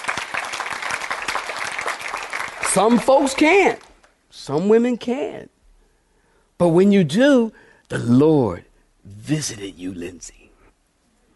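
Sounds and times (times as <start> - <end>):
audience clapping hands: 0.0 - 4.1
speech: 2.8 - 5.6, 6.6 - 10.4.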